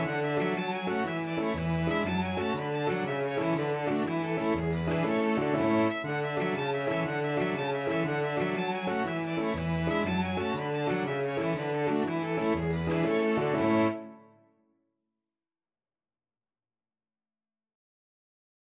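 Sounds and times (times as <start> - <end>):
piano quintet playing a traditional Irish jig medley: 0.0 - 14.0.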